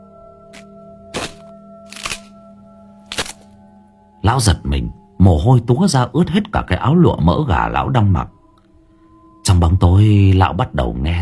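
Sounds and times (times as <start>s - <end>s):
tree branch snapping: 0.5s - 2.4s, 3.1s - 3.6s
speech: 4.3s - 8.4s, 9.5s - 11.2s.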